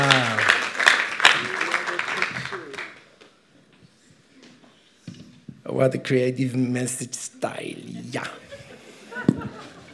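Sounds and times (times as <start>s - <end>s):
audience applause for the band: 0.0s - 3.1s
speech: 5.8s - 8.4s
laughter: 8.2s - 9.9s.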